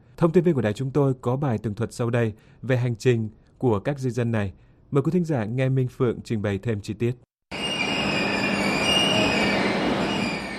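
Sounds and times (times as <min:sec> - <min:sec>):
speech: 0:00.2 - 0:07.3
express train from Verona to Munich rumbling at Brenner station: 0:07.5 - 0:10.5
high sustained wheel squeal of the train: 0:07.5 - 0:10.5.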